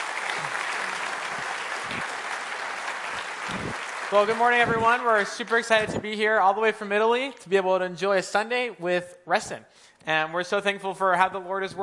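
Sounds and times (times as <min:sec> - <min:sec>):
church congregation applauding missionary guests at a Sunday service: 0:00.0 - 0:06.0
speech: 0:04.1 - 0:11.8.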